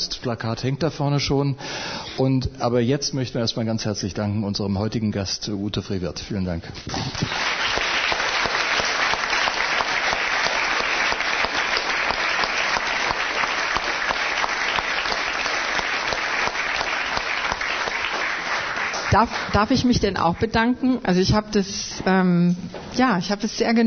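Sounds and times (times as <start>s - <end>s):
speech: 0.2s - 7.5s, 19.1s - 23.8s
audience applause: 7.1s - 20.0s.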